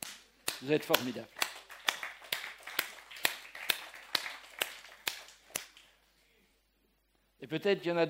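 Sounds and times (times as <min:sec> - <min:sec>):
speech: 0:00.6 - 0:01.4, 0:07.4 - 0:08.0
audience applause: 0:01.3 - 0:05.9.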